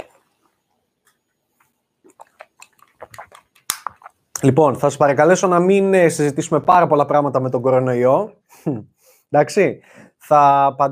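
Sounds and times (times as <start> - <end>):
person sipping and gulping water: 1.6 - 4.4
speech: 4.4 - 10.8.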